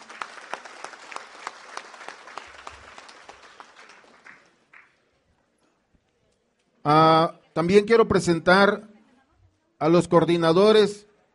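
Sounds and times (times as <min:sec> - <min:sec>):
audience applause: 0:00.0 - 0:05.0
speech: 0:06.8 - 0:08.9, 0:09.8 - 0:11.3.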